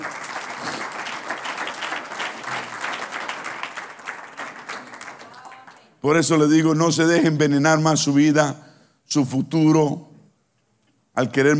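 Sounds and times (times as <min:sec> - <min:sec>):
audience applause: 0:00.0 - 0:05.9
speech: 0:06.0 - 0:10.1, 0:11.2 - 0:11.5.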